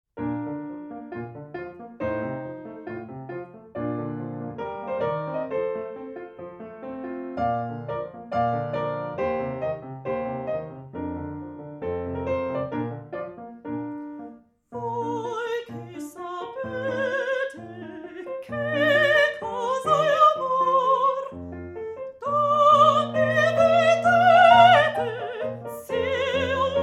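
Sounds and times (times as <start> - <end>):
piano: 0.2 - 26.8
person singing: 14.7 - 21.4, 22.2 - 26.8.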